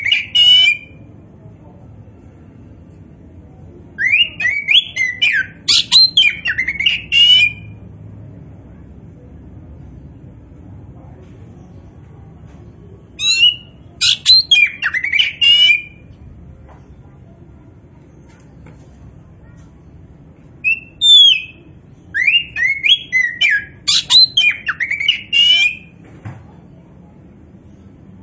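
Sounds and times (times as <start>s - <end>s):
Oriental magpie-robin singing: 0.0s - 1.0s, 4.0s - 7.8s, 13.2s - 16.2s, 20.6s - 26.0s.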